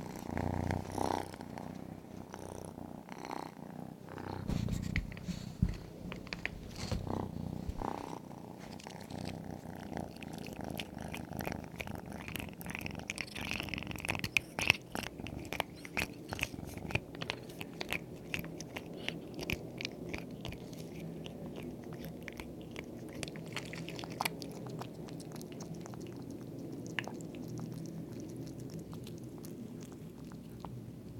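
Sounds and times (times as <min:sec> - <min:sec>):
cat purring: 0:00.0 - 0:31.1.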